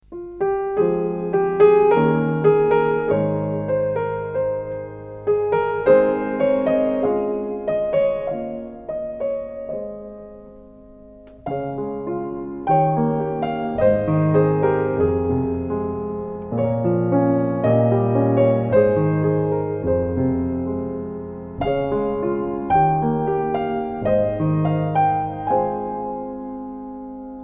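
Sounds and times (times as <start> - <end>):
instrumental music: 0.0 - 27.4.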